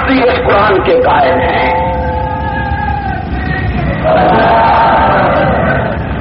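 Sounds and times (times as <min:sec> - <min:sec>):
speech: 0:00.2 - 0:02.0
crowd chanting religious slogan: 0:01.1 - 0:06.1.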